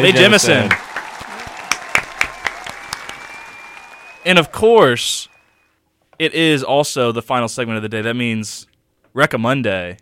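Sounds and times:
speech: 0.0 - 0.9, 4.2 - 5.3, 6.2 - 9.9
applause sound effect: 0.0 - 5.5.

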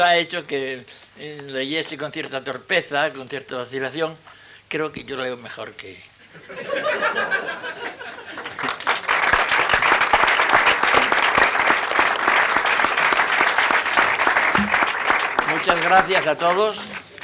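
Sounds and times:
speech: 0.0 - 7.5, 15.6 - 17.0
laughter: 6.2 - 9.1
audience applause: 8.0 - 17.2.

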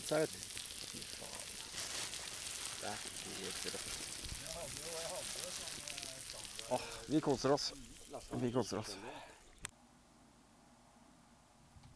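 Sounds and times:
bacon with oregano and thyme frying in a pan: 0.0 - 9.5
speech: 0.1 - 1.4, 2.8 - 9.4.

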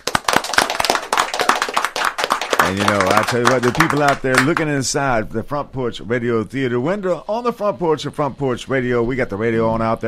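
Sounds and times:
applause in the studio: 0.0 - 4.7
speech: 2.7 - 10.0.

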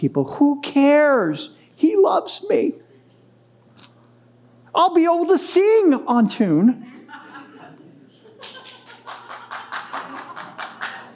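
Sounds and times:
speech: 0.0 - 2.8, 4.8 - 6.9
laughter: 6.8 - 11.1
crowd clapping in unison: 8.4 - 11.1.

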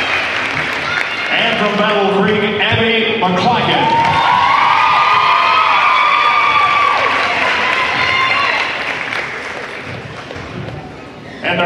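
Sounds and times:
crowd applause and cheering: 0.0 - 2.2, 3.4 - 11.2
speech: 1.6 - 4.3
shrill whoops and shouts: 3.8 - 8.8.

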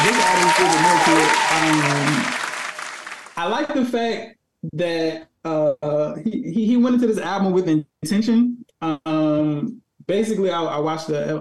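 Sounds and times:
hand claps applause: 0.0 - 3.5
speech: 3.5 - 11.4.

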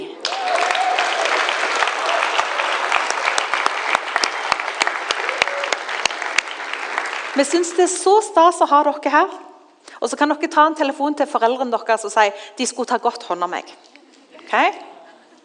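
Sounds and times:
audience applause: 0.0 - 7.8
speech: 7.4 - 9.4, 10.0 - 13.9, 14.5 - 14.9.

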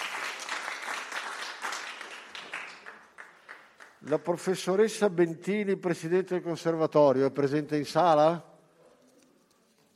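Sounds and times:
audience applause: 0.0 - 4.4
speech: 4.0 - 8.5.

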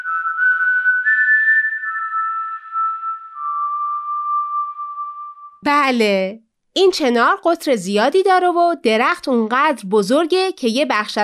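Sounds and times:
person whistling: 0.0 - 5.6
speech: 5.6 - 11.2.

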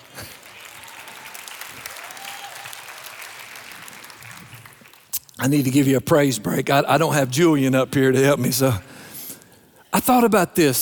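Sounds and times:
audience clapping in a large room: 0.0 - 5.9
speech: 5.4 - 8.9, 10.0 - 10.7.

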